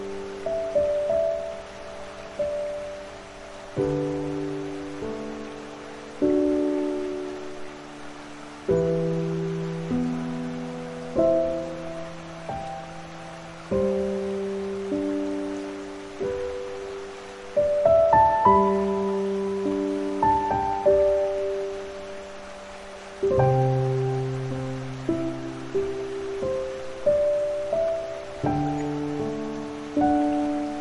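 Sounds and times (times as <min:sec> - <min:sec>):
piano: 0:00.0 - 0:30.8
streaming water: 0:00.0 - 0:30.8.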